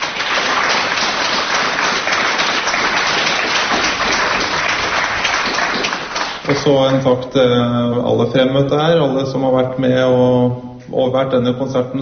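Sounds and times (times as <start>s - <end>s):
concert audience applause: 0.0s - 6.7s
speech: 6.5s - 11.9s.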